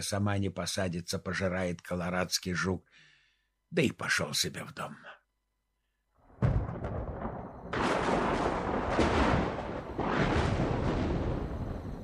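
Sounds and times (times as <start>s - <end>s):
speech: 0.0s - 3.1s, 3.7s - 5.2s
thunderstorm thunder rumbling: 6.3s - 12.0s.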